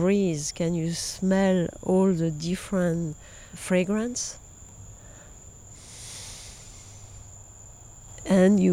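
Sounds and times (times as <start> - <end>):
speech: 0.0 - 4.4, 8.2 - 8.7
crickets chirping in a garden: 0.0 - 8.7
mosquitoes: 3.1 - 8.7.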